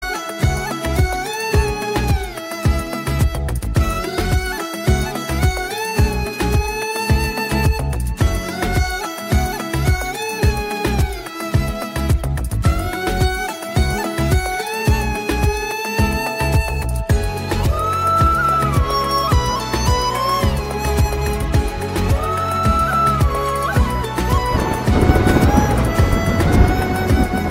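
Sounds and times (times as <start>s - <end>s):
instrumental background music: 0.0s - 27.5s.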